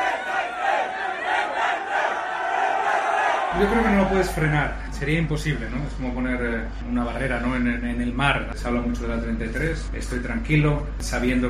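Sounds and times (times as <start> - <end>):
crowd shouting and cheering at race pit lane: 0.0 - 4.8
speech: 3.6 - 11.4.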